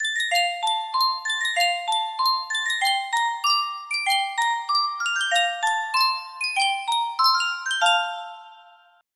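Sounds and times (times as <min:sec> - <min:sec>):
Sankyo miniature music box: 0:00.0 - 0:09.0.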